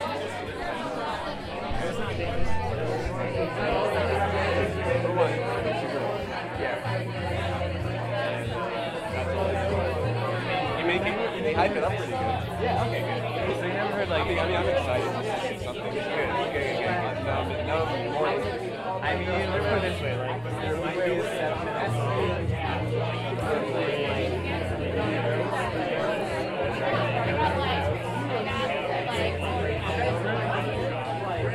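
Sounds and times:
college crowd noise: 0.0 - 31.5.

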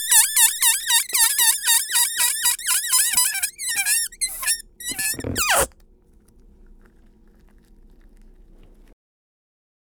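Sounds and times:
balloon: 0.0 - 5.8.

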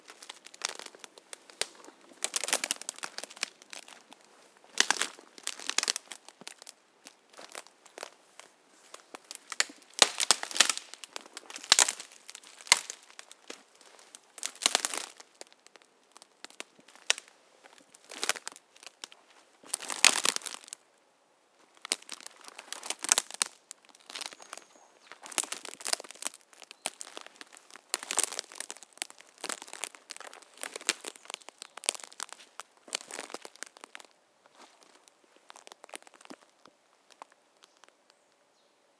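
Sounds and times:
foot on branches and twigs: 0.0 - 20.8, 21.6 - 38.0.

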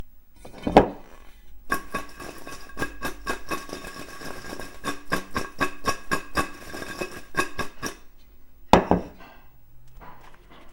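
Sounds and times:
potato nuggets shaken in a metal bowl: 1.7 - 8.1.

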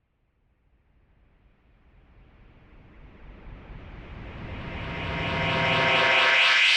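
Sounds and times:
reversed space cymbal: 4.4 - 6.7.

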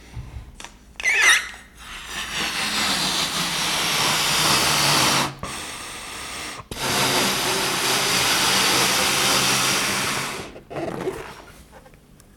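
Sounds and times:
balloon inflating: 1.0 - 11.5.

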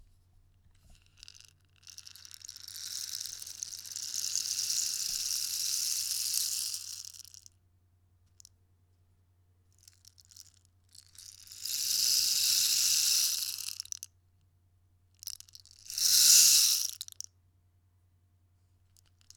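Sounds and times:
rainstick: 1.2 - 7.4, 11.1 - 14.0, 15.3 - 17.3.

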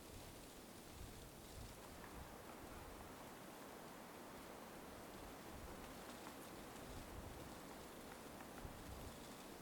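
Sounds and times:
light winter wind through bare trees in a forest: 0.0 - 9.6.

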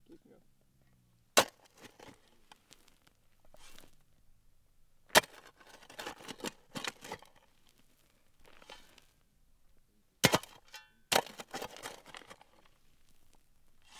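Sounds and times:
shovel digging into dry dirt: 1.4 - 2.8, 3.5 - 4.0, 5.2 - 7.4, 10.2 - 12.8.

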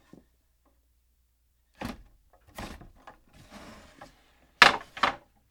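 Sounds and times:
wooden ladder handling: 1.8 - 5.2.

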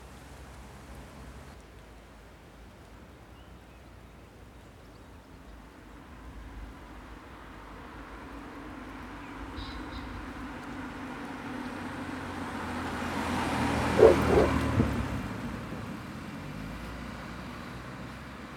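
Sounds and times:
traffic passing on a country road: 5.5 - 18.5.

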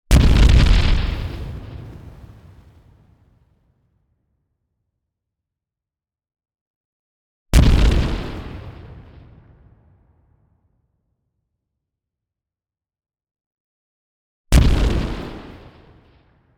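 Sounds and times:
designed explosion: 0.1 - 3.5, 7.6 - 9.8.

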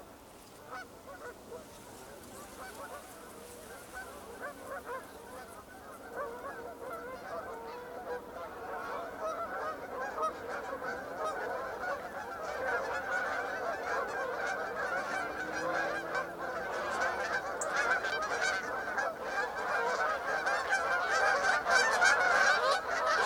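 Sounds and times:
Canada geese honking: 0.6 - 23.2.

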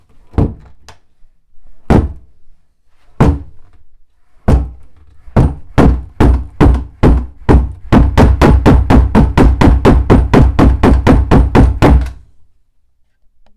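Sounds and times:
door banging: 0.3 - 0.8, 4.5 - 12.3.

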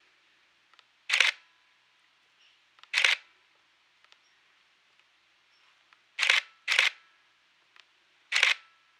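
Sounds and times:
slow camera shutter: 1.0 - 1.5, 2.8 - 3.4, 6.2 - 7.1, 7.7 - 8.9.

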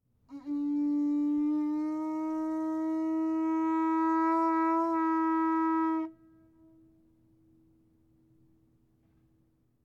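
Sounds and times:
conch: 0.3 - 6.3.

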